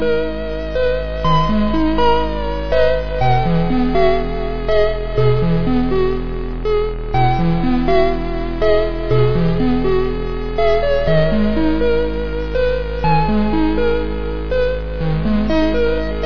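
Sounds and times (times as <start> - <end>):
song: 0.1 - 16.2.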